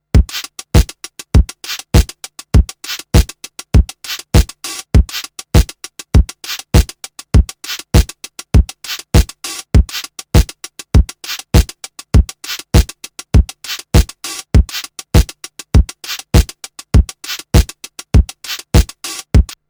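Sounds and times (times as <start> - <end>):
lo-fi drum machine: 0.0 - 19.6.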